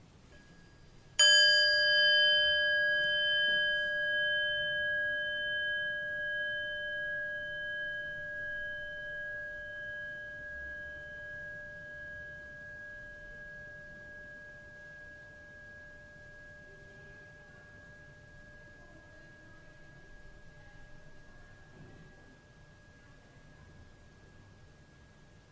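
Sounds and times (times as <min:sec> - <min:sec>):
meditation bell struck and ringing out: 0:00.4 - 0:21.1.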